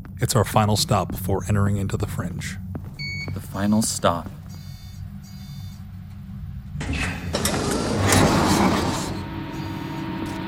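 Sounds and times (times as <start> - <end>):
speech: 0.2 - 2.7, 3.4 - 4.4
mechanical door sliding shut and locking: 6.8 - 9.9.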